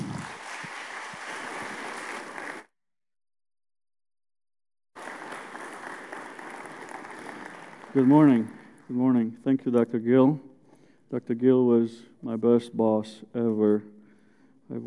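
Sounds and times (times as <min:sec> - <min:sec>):
audience applause welcoming a speaker: 0:00.0 - 0:02.6, 0:05.0 - 0:08.9
speech: 0:07.9 - 0:10.5, 0:11.1 - 0:13.9, 0:14.7 - 0:14.8.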